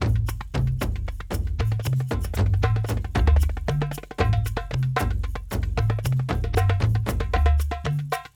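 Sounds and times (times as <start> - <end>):
kendang drum: 0.0 - 8.3.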